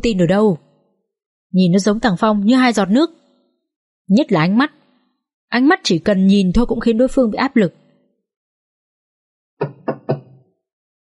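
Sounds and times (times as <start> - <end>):
speech: 0.0 - 0.6, 1.5 - 3.2, 4.1 - 4.8, 5.5 - 7.8, 9.6 - 9.8
knocking on a door: 9.6 - 10.5.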